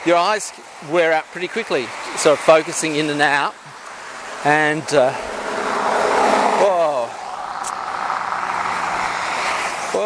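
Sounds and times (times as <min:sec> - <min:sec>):
speech: 0:00.0 - 0:03.7, 0:04.4 - 0:05.3
four-wheel drive vehicle engine driving off-road: 0:03.6 - 0:10.0.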